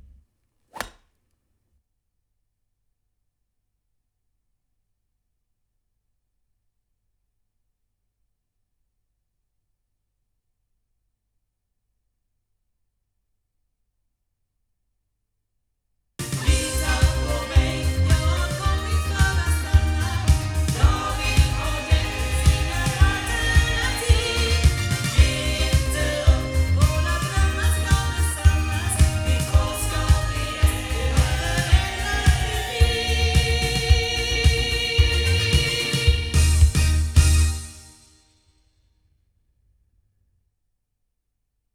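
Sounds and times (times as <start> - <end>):
loudspeakers: 16.3 - 37.3.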